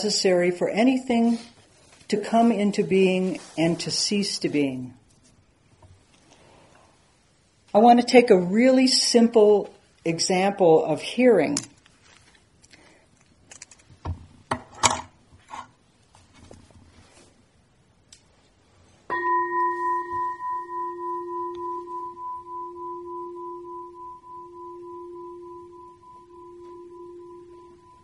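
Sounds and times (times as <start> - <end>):
speech: 0.0 - 1.5, 2.1 - 5.0, 7.7 - 11.7
meditation bell struck and ringing: 19.1 - 28.0.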